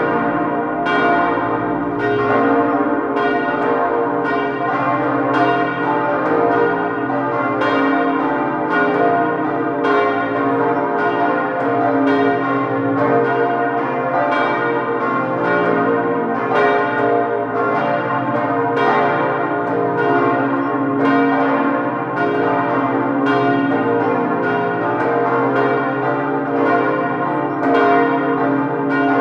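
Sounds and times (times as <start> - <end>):
church bells of the Dankeskirche in Bad Nauheim: 0.0 - 29.2.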